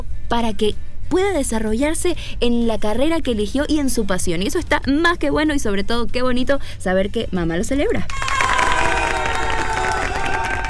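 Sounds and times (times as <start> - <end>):
speech: 0.3 - 8.3
crowd applause and cheering: 8.1 - 10.6.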